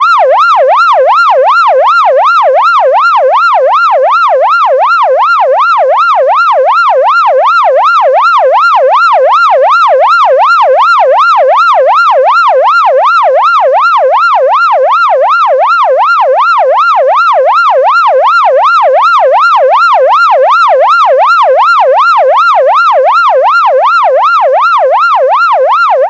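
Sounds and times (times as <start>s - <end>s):
electronic siren: 0.0s - 26.0s.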